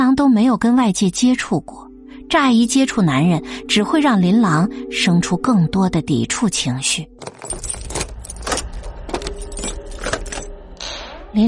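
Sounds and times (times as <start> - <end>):
speech: 0.1 - 7.7
keys jangling: 7.2 - 10.5.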